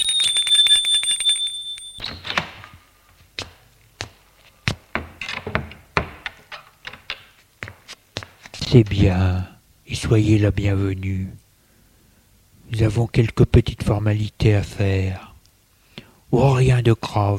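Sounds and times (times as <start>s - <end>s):
doorbell ringing at hotel door: 0.0s - 2.2s
speech: 8.7s - 11.4s, 12.7s - 15.3s, 16.3s - 17.3s.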